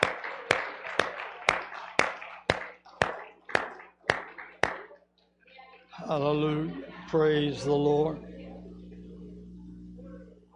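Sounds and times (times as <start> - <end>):
audience hand clapping: 0.0 - 5.1
speech: 6.1 - 8.3.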